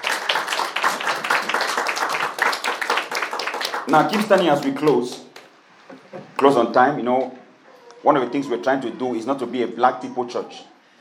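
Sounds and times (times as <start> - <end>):
audience clapping hands: 0.0 - 5.6
speech: 3.9 - 5.3, 6.4 - 7.4, 8.0 - 10.7.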